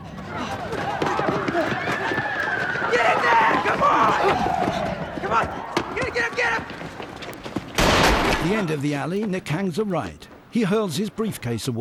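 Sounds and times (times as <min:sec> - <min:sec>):
people shouting excitedly: 0:00.0 - 0:07.2
group of people running footsteps down an alley: 0:00.0 - 0:11.0
speech: 0:08.4 - 0:11.8.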